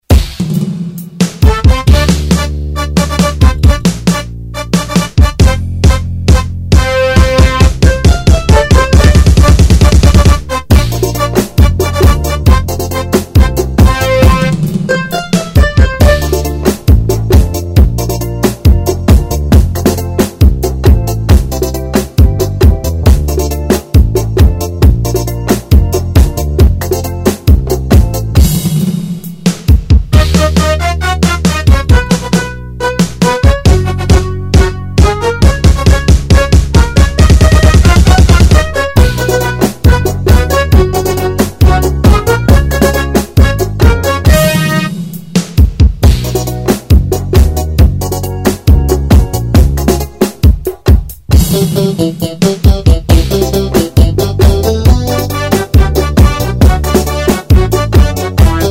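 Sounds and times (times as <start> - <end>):
rhythmic music: 0.0 - 58.6.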